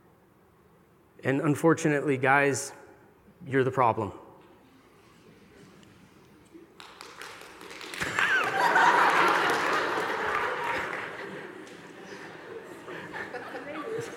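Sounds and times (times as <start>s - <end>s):
speech: 1.2s - 2.8s, 3.4s - 4.2s
audience slow clap: 6.6s - 12.8s
audience laughing: 8.0s - 14.1s.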